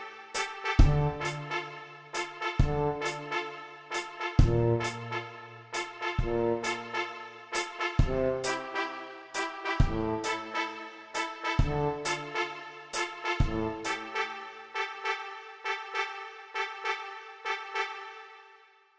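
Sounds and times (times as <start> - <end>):
tuba: 0.0 - 18.7
trumpet: 0.0 - 18.9.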